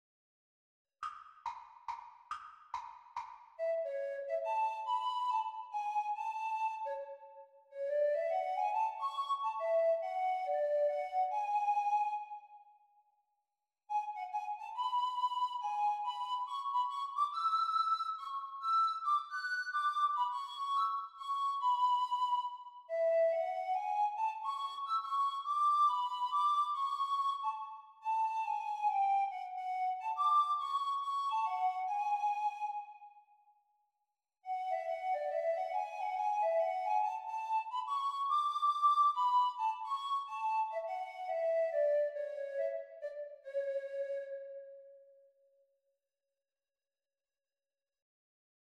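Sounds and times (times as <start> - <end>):
descant recorder performance: 3.6 - 12.6, 13.9 - 33.2, 34.5 - 45.0.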